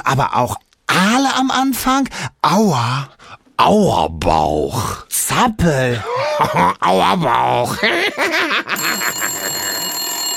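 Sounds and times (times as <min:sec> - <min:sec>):
speech: 0:00.0 - 0:09.6
laughter: 0:06.2 - 0:09.9
telephone ringing with a shrill high electronic tone: 0:08.7 - 0:10.3.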